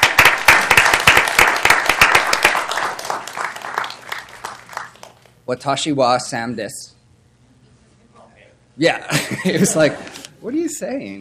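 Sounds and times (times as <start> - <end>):
audience clapping in welcome: 0.0 - 5.4
speech: 5.5 - 6.9, 8.8 - 11.1
laughter: 9.1 - 10.3.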